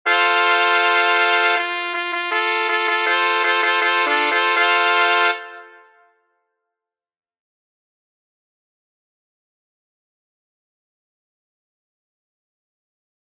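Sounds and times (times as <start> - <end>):
trumpet in C: 0.0 - 6.3.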